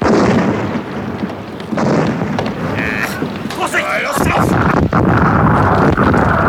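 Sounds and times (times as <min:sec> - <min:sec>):
swivel gun cannon firing: 0:00.0 - 0:06.4
voices shouting: 0:01.5 - 0:06.4.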